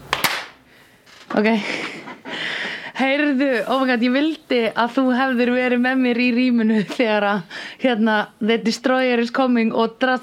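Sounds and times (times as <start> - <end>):
hand claps for recording sync: 0.0 - 0.6
speech: 1.4 - 1.9, 3.0 - 10.2.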